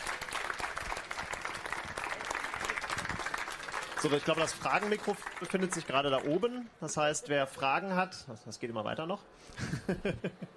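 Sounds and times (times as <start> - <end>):
audience applause: 0.0 - 6.5
speech: 4.0 - 10.5.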